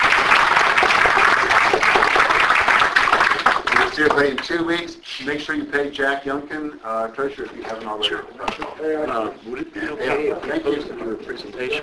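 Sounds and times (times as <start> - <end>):
audience round of applause after a presentation at a members' meeting: 0.0 - 4.5
speech: 4.0 - 11.8.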